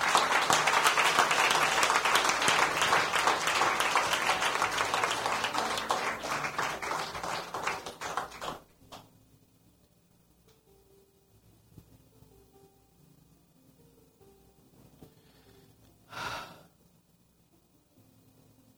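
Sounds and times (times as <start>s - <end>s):
audience applause: 0.0s - 9.0s.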